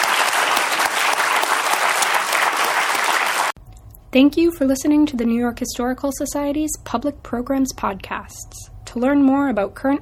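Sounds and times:
audience applause: 0:00.0 - 0:03.6
speech: 0:04.1 - 0:10.0.

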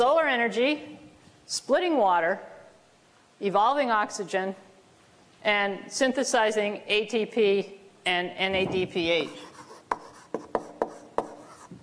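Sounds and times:
speech: 0:00.0 - 0:00.9, 0:01.5 - 0:02.5, 0:03.4 - 0:04.6, 0:05.4 - 0:09.5
writing on a board: 0:09.2 - 0:11.8.

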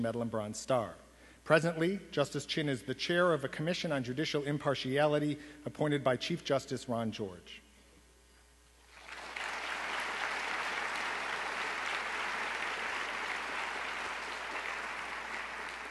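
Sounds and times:
speech: 0:00.0 - 0:07.6
audience applause: 0:08.9 - 0:15.9.

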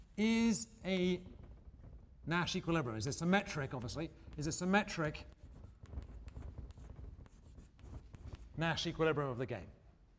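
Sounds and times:
speech: 0:00.2 - 0:01.3, 0:02.3 - 0:05.4, 0:08.6 - 0:09.8
chalk or pen scratching as a lecturer writes: 0:03.7 - 0:08.6.

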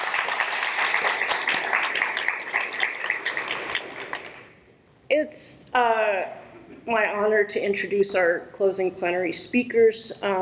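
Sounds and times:
audience applause: 0:00.0 - 0:04.5
speech: 0:05.2 - 0:10.4.

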